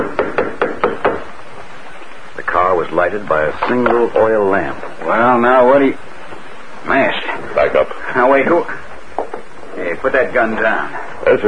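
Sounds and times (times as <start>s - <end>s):
knocks on a wooden door: 0.0s - 1.3s
speech: 3.0s - 6.1s, 6.8s - 8.9s, 9.9s - 11.4s.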